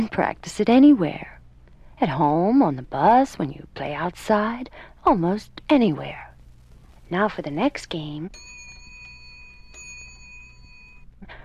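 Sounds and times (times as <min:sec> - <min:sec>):
speech: 0:00.0 - 0:01.3, 0:02.0 - 0:06.3, 0:07.1 - 0:08.5
school bell ringing: 0:08.3 - 0:11.1.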